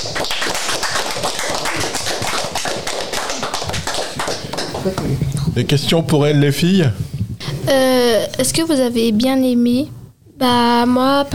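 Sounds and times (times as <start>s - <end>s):
audience applause: 0.0s - 5.1s
speech: 4.8s - 7.1s, 7.7s - 11.3s.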